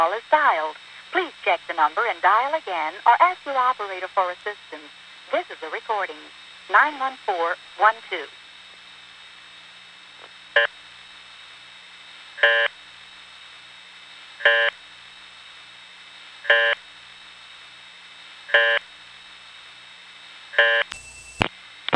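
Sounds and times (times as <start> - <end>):
speech: 0.0 - 8.4, 12.4 - 12.8
telephone reorder tone at 30 impulses per minute: 12.4 - 12.7, 14.4 - 14.8, 16.4 - 16.8, 18.5 - 18.8, 20.5 - 21.9.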